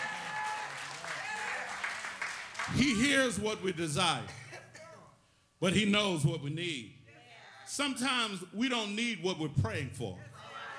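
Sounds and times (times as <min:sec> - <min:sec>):
audience clapping: 0:00.0 - 0:03.4
speech: 0:02.7 - 0:04.4, 0:05.6 - 0:07.0, 0:07.7 - 0:10.3.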